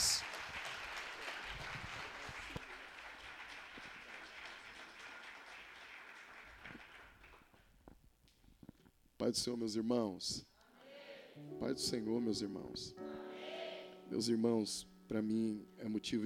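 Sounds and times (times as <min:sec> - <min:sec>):
audience applauding: 0:00.0 - 0:07.7
speech: 0:09.2 - 0:10.5, 0:11.7 - 0:13.1, 0:14.1 - 0:16.2.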